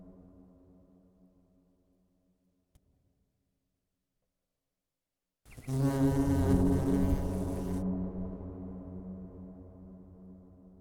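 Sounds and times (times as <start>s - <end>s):
bee buzzing: 5.5s - 7.8s.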